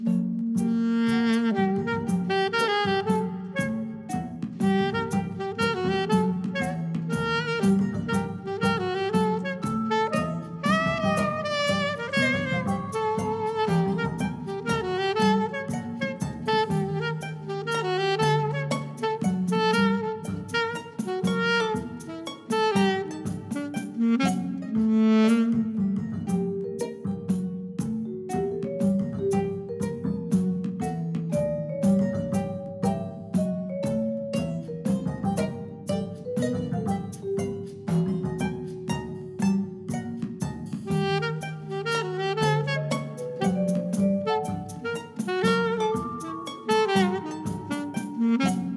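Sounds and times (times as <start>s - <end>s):
waltz music: 0.2s - 48.7s.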